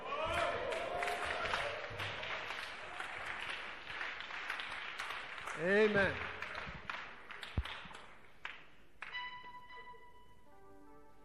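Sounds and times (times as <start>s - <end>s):
audience clapping: 0.0s - 9.3s
speech: 5.6s - 6.3s.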